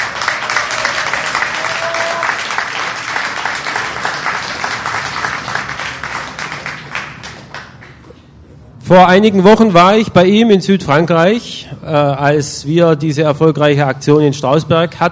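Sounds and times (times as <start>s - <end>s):
audience applause: 0.0s - 8.2s
speech: 8.9s - 15.1s.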